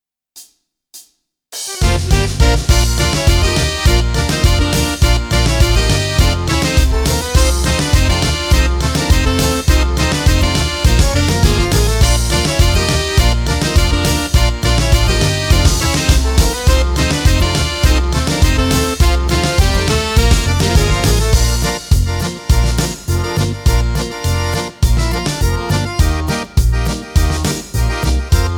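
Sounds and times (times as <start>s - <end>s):
folk party music: 1.8s - 28.5s.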